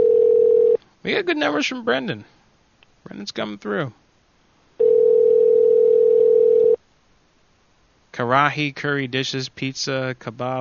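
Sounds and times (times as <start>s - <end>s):
telephone ringing tone: 0.0s - 0.8s, 4.8s - 6.8s
speech: 1.0s - 2.4s, 3.0s - 4.0s, 8.2s - 10.6s.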